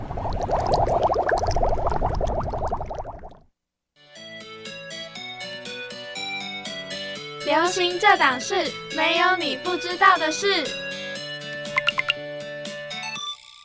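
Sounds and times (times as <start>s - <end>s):
water bubbling: 0.0s - 3.5s
speech: 7.7s - 10.8s.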